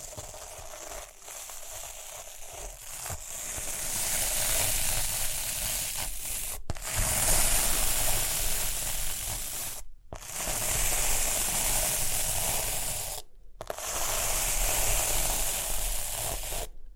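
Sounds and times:
rhinestones brushed and scratched in a crackling hiss: 0:00.0 - 0:07.4, 0:08.7 - 0:16.7.

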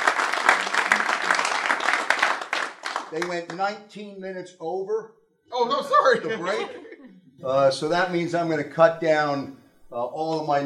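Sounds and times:
crowd round of applause: 0:00.0 - 0:03.6
speech: 0:03.1 - 0:10.6
laughter: 0:05.6 - 0:07.3.

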